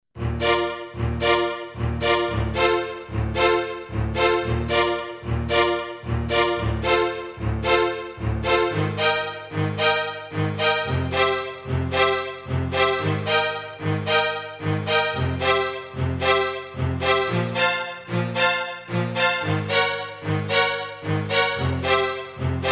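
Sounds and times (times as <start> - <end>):
strings: 0.2 - 22.7.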